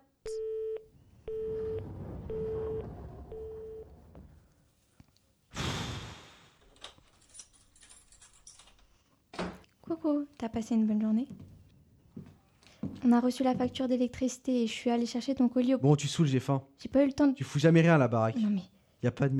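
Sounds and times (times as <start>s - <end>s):
speech: 0.2s - 0.6s, 10.0s - 11.5s, 13.0s - 19.3s
elevator arriving: 0.9s - 4.5s.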